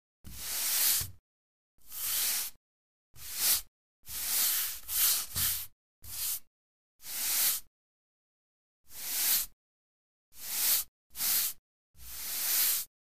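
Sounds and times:
billiards brush: 0:00.3 - 0:01.2, 0:01.9 - 0:02.6, 0:03.2 - 0:06.5, 0:07.1 - 0:07.7, 0:09.0 - 0:09.5, 0:10.4 - 0:12.9.

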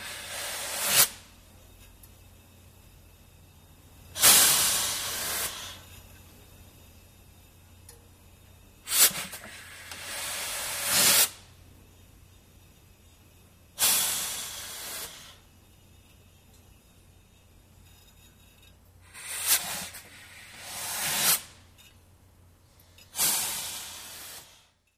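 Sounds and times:
cleaners steam press releasing air: 0:00.0 - 0:01.7, 0:04.0 - 0:06.2, 0:08.4 - 0:11.7, 0:13.7 - 0:16.1, 0:19.0 - 0:21.8, 0:22.8 - 0:24.9.

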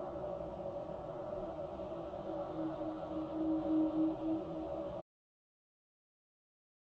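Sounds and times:
tonal ambient drone: 0:00.1 - 0:05.0.

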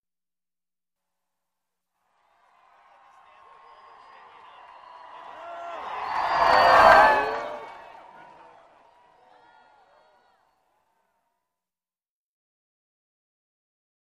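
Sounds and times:
arena crowd: 0:02.0 - 0:11.4.

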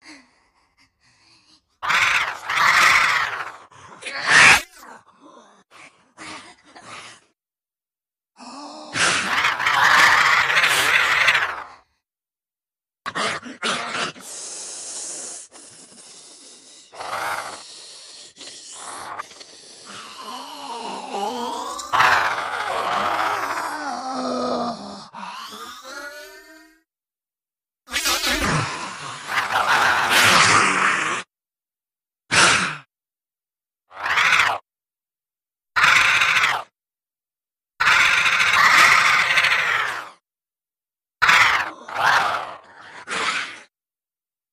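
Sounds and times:
Kyma zombie monster sounds: 0:01.4 - 0:07.3, 0:08.4 - 0:11.9, 0:13.1 - 0:26.8, 0:27.9 - 0:31.3, 0:32.3 - 0:32.9, 0:33.9 - 0:34.6, 0:35.8 - 0:36.7, 0:37.8 - 0:40.2, 0:41.2 - 0:43.7.

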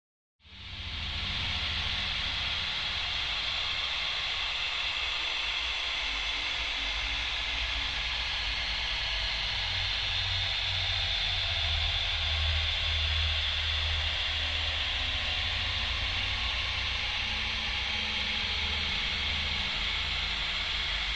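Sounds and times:
UFO engine room ambience: 0:00.5 - 0:21.1.

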